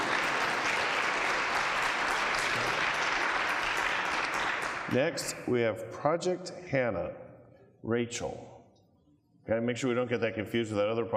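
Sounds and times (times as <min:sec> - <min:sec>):
audience clapping: 0:00.0 - 0:05.2
speech: 0:04.9 - 0:07.2, 0:07.8 - 0:08.6, 0:09.5 - 0:11.1.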